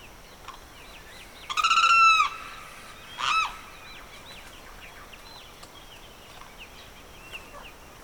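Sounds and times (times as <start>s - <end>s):
bird harsh buzzy calls: 1.2s - 4.1s.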